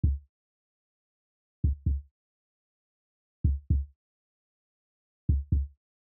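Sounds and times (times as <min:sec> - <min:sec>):
heartbeat: 0:00.0 - 0:00.2, 0:01.6 - 0:02.0, 0:03.5 - 0:03.9, 0:05.3 - 0:05.7.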